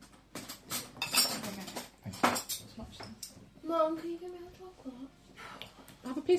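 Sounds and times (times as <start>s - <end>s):
metal spoons clinking against dishes: 0.4s - 3.3s
speech: 3.7s - 5.2s.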